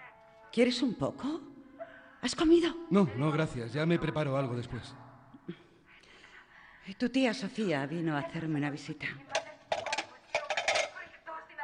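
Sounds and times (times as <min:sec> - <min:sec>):
speech: 0:00.5 - 0:01.5, 0:02.2 - 0:05.6, 0:06.8 - 0:09.4
plates and dishes clinking: 0:09.3 - 0:11.0.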